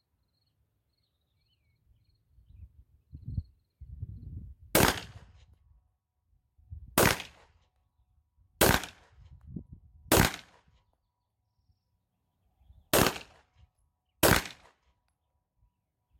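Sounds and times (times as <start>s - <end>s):
gunshots in a video game: 4.8s - 5.3s, 7.0s - 7.5s, 8.6s - 9.1s, 10.1s - 10.7s, 12.9s - 13.5s, 14.2s - 14.8s.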